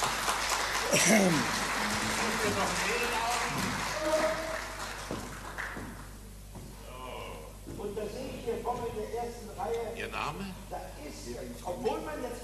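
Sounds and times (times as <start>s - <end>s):
audience applause: 0.0s - 6.2s
speech: 0.9s - 1.6s, 2.4s - 4.5s, 8.0s - 12.4s.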